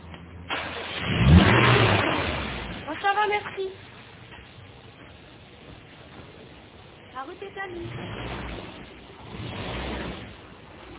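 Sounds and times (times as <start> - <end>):
rental car engine starting and revving: 0.8 - 3.0, 7.7 - 10.9
speech: 7.2 - 8.4.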